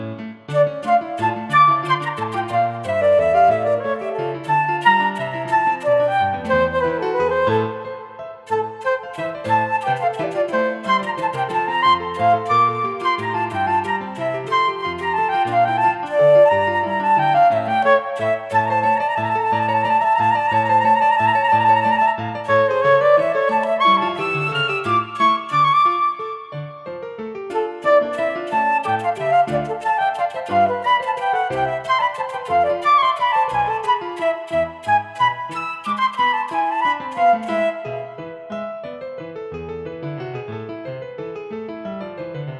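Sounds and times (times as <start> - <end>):
flute: 0.5 - 39.0.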